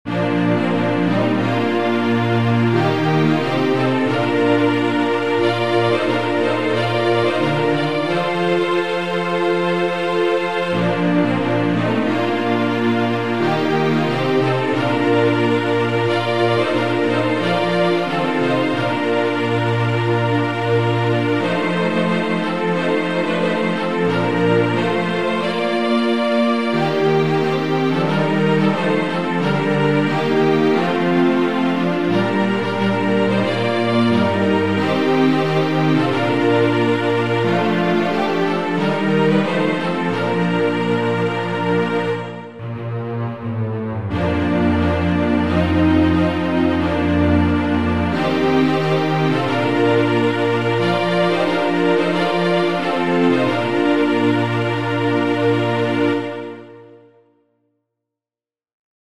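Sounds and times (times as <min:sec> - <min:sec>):
strings: 0:00.0 - 0:57.2.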